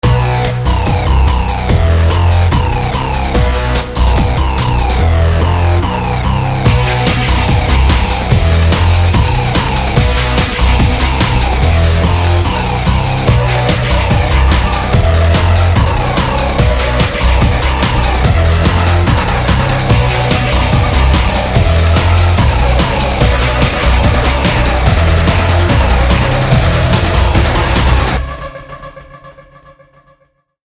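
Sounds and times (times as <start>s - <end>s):
aggressive beat: 0.0s - 28.5s.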